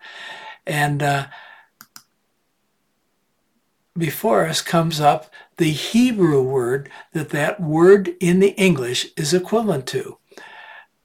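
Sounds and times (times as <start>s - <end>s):
speech: 0.7s - 1.4s, 4.0s - 10.5s
computer mouse clicks on a Strong's number link in an online Bible concordance: 1.8s - 2.1s.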